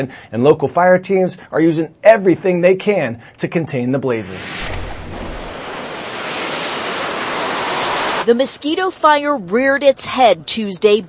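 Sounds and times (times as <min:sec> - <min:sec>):
speech: 0:00.0 - 0:04.9, 0:08.2 - 0:11.0
firefighting air tanker flying low overhead: 0:04.4 - 0:08.3.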